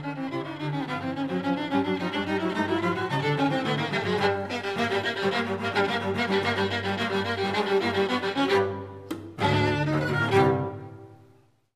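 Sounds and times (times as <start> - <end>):
cello playing a duet: 0.0 - 11.7
violin playing a duet: 0.0 - 11.7.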